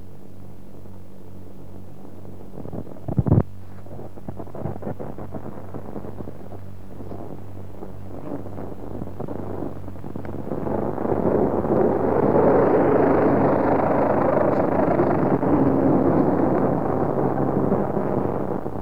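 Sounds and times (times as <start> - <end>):
helicopter flying overhead to the drop site: 7.3 - 18.8.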